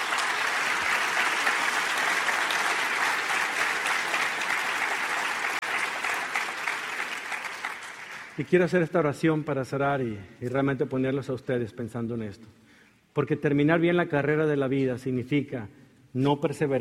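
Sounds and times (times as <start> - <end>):
audience applause: 0.0 - 8.4
speech: 8.4 - 12.6, 13.2 - 16.7.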